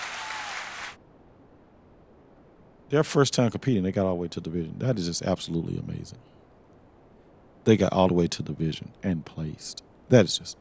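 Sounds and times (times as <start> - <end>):
crowd applause sound effect: 0.0 - 1.0
speech: 2.9 - 6.4, 7.6 - 10.5.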